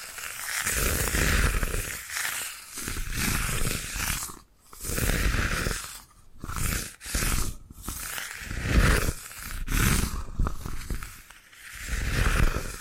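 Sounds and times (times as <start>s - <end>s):
bamboo brushed and scratched: 0.0s - 12.8s.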